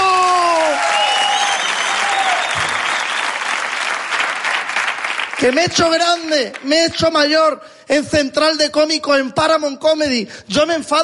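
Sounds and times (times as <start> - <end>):
audience applause: 0.0 - 6.7
speech: 5.4 - 11.0.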